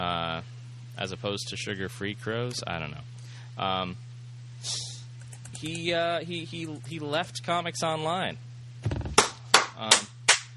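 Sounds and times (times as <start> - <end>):
low steady hum: 0.0 - 10.5
speech: 1.0 - 4.0, 4.6 - 4.9, 5.6 - 9.0, 9.8 - 10.1
hand claps: 9.0 - 10.5.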